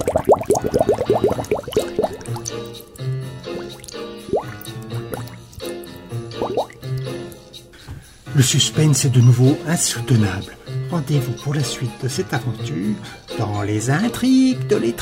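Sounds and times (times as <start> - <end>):
water rising quickly, flooding a cellar, bubbling and gurgling: 0.0 - 2.9, 3.5 - 5.7, 6.3 - 7.0
speech: 8.4 - 15.0.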